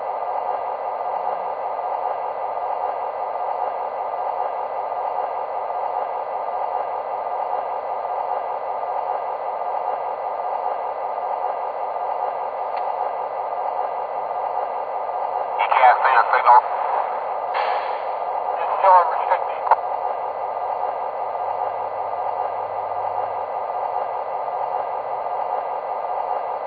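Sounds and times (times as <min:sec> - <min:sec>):
train: 0:00.0 - 0:26.6.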